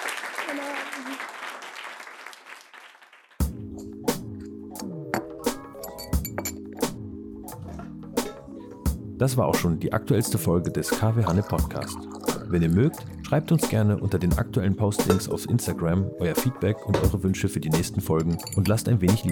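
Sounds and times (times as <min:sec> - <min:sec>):
applause for the guests: 0:00.0 - 0:03.4
speech: 0:00.5 - 0:01.4, 0:09.2 - 0:19.3
music track with sharp percussive hits over low tones: 0:03.4 - 0:09.8, 0:10.9 - 0:15.4, 0:16.4 - 0:19.3.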